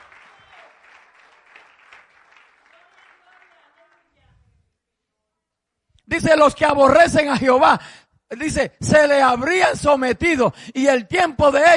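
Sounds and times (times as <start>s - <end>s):
audience applause: 0.0s - 4.0s
speech: 6.1s - 11.7s.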